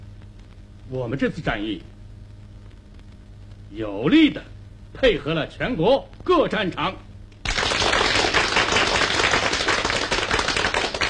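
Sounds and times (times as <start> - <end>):
speech: 0.9 - 2.0, 3.7 - 7.0
audience applause: 7.4 - 11.0.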